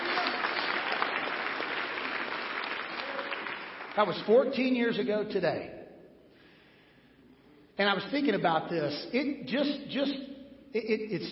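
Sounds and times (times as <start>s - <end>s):
audience applause: 0.0s - 4.1s
speech: 4.0s - 5.8s, 7.8s - 11.3s.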